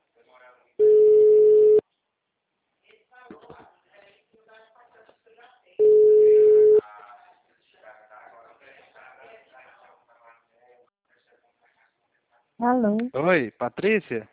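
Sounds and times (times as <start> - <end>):
telephone ringback tone on an outgoing call: 0.8 - 1.8, 5.8 - 6.8
speech: 12.6 - 14.3.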